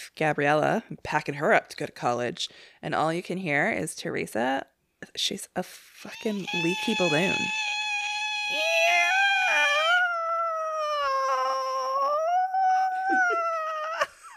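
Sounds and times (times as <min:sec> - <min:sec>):
speech: 0:00.1 - 0:07.6
cat squealing: 0:06.2 - 0:14.0.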